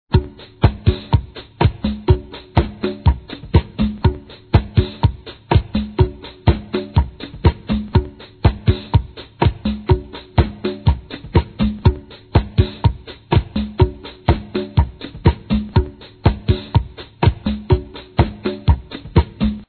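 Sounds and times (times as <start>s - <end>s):
drums: 0.1s - 19.6s.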